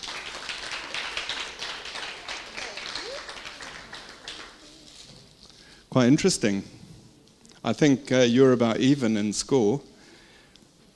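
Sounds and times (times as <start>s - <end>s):
small group clapping: 0.0s - 5.1s
speech: 6.0s - 6.8s, 7.6s - 9.9s.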